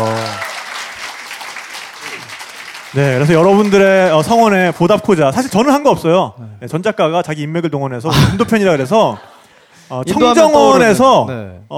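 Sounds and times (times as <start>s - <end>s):
group of people clapping: 0.0s - 5.7s
speech: 2.9s - 9.3s, 9.9s - 11.7s.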